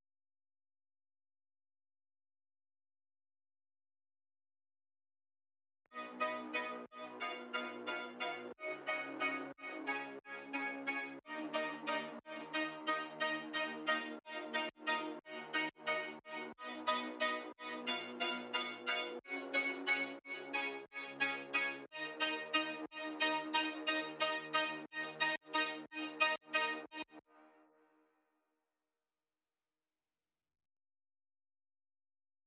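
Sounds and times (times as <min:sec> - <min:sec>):
synth pads: 0:05.9 - 0:27.2.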